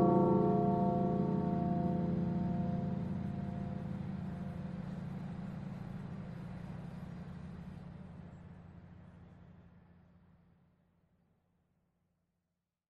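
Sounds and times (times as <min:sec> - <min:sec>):
bell: 0:00.0 - 0:05.6.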